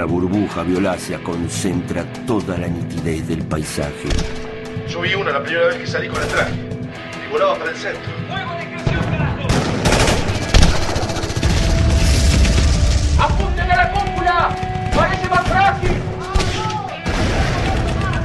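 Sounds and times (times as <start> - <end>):
speech: 0.0 - 8.4
gunfire as bullets strike an alien flying ship: 8.9 - 13.0, 13.8 - 18.2.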